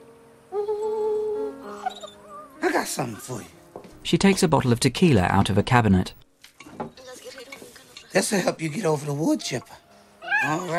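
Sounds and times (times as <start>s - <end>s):
dog whimpering with a high whine: 1.6s - 3.2s, 10.2s - 10.7s
speech: 2.8s - 6.2s, 8.2s - 9.8s, 10.4s - 10.7s.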